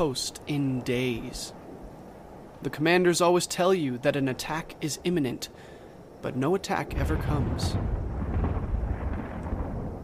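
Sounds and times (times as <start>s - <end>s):
speech: 0.0s - 1.6s, 2.6s - 8.0s
artillery detonations rumbling: 6.9s - 10.0s.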